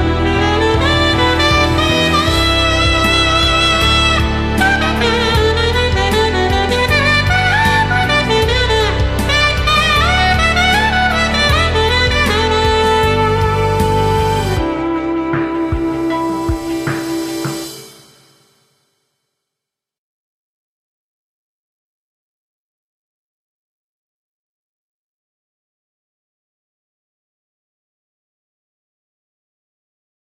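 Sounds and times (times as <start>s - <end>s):
alto saxophone playing a cover: 0.0s - 18.3s.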